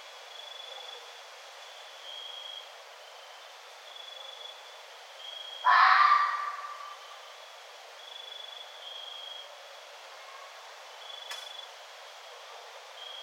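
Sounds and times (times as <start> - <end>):
red fox scream: 5.6 - 7.0.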